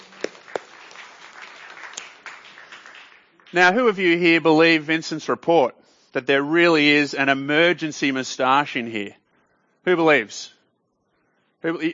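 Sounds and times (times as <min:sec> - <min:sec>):
children clapping: 0:00.0 - 0:03.8
speech: 0:03.5 - 0:09.2, 0:09.8 - 0:10.6, 0:11.6 - 0:11.9.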